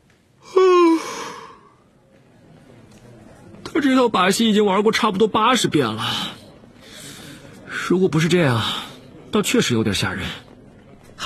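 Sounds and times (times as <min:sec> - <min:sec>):
big yawn: 0:00.4 - 0:01.7
speech: 0:03.8 - 0:06.3, 0:07.9 - 0:10.5.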